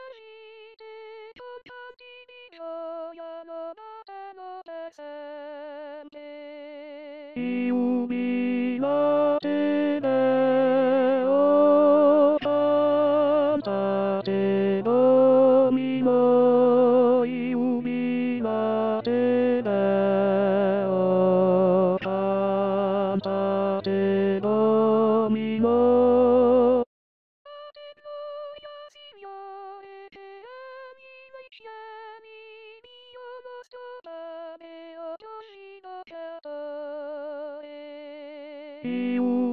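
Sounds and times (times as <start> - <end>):
tenor voices singing: 7.4 - 26.8, 38.9 - 39.5.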